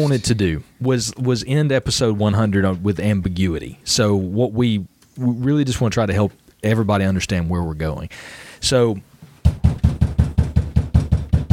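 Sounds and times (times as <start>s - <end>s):
speech: 0.0s - 9.6s
heavy knocking on a door: 9.4s - 11.5s.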